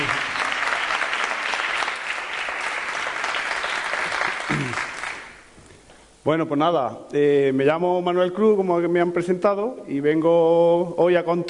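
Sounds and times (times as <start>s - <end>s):
audience applause: 0.0s - 5.4s
speech: 6.3s - 11.4s.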